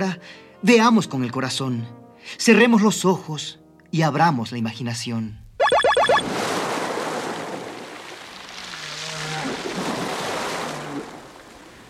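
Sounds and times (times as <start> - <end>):
speech: 0.0 - 5.4
ocean waves washing onto the seashore: 6.2 - 8.8, 9.4 - 11.8.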